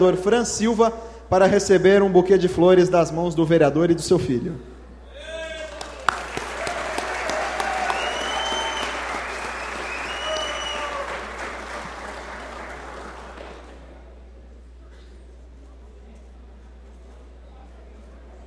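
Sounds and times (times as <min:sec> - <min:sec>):
speech: 0:00.0 - 0:04.7
audience applause: 0:05.4 - 0:14.1.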